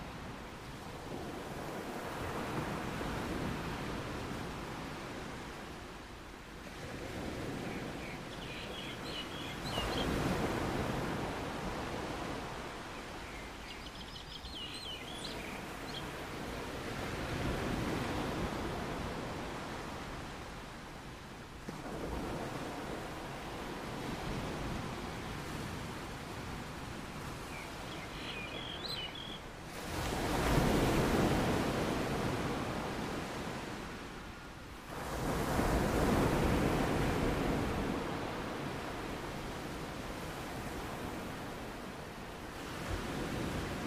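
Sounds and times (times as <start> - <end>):
ocean waves rolling in and washing out: 0.0 - 43.8
faint chirping bird calls: 7.7 - 10.2, 13.0 - 16.2, 27.4 - 29.5.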